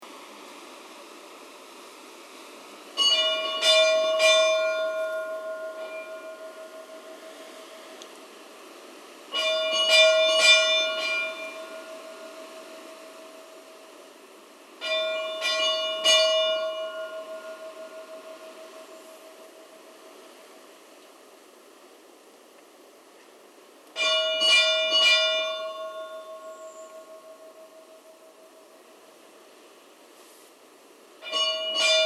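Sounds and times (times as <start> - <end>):
church bells of Stadarkirkja in Reykholt: 3.0 - 7.9, 9.3 - 13.9, 14.8 - 19.9, 24.0 - 28.7, 31.2 - 32.0.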